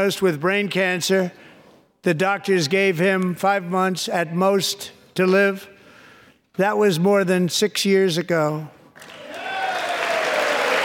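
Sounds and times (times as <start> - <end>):
speech: 0.0 - 5.7, 6.6 - 8.8
audience applause: 9.0 - 10.8.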